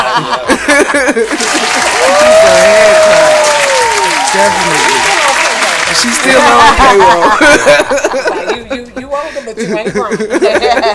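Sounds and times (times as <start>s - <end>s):
laughter: 0.0s - 3.2s, 6.0s - 10.9s
speech: 0.2s - 3.3s, 4.3s - 5.2s, 5.9s - 10.9s
several people applauding: 1.0s - 7.6s
sustained high whoop or whistle: 2.0s - 4.3s.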